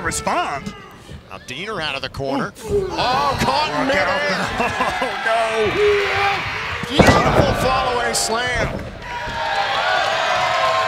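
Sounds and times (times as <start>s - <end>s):
speech: 0.1s - 8.9s
laughter: 2.9s - 6.2s
large crowd cheering: 2.9s - 10.8s.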